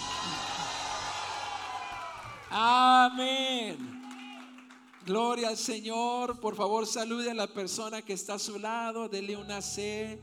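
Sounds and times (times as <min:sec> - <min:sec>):
voices cheering and whooping with joy: 0:00.0 - 0:02.6
large audience applauding: 0:00.0 - 0:05.6
speech: 0:02.5 - 0:04.0, 0:05.1 - 0:10.2.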